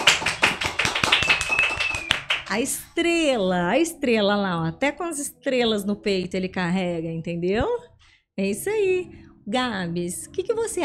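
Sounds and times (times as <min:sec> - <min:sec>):
applause from a few people: 0:00.0 - 0:02.7
thin high whistle: 0:01.2 - 0:02.3
speech: 0:02.5 - 0:10.8.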